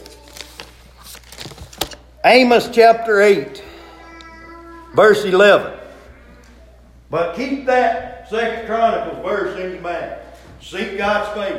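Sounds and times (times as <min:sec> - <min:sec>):
paper being handled: 0:00.0 - 0:02.0
speech: 0:02.2 - 0:03.6, 0:05.0 - 0:05.8, 0:07.1 - 0:11.5.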